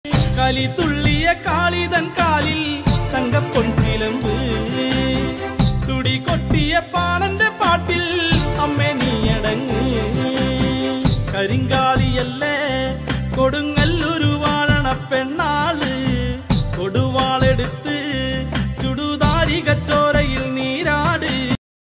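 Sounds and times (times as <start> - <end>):
trending Malayalam song: 0.0 - 21.6.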